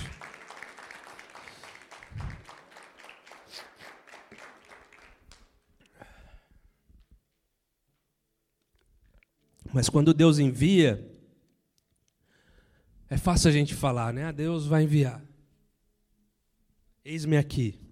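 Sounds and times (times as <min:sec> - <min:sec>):
audience applause: 0:00.0 - 0:05.6
speech: 0:09.8 - 0:11.1, 0:13.2 - 0:15.3, 0:17.0 - 0:17.8.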